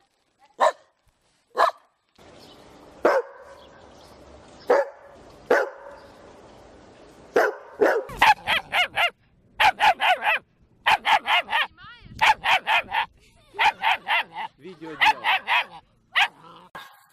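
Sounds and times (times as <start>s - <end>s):
dog barking: 0.6s - 0.9s, 1.5s - 1.9s, 3.0s - 3.6s, 4.7s - 6.1s, 7.4s - 16.9s.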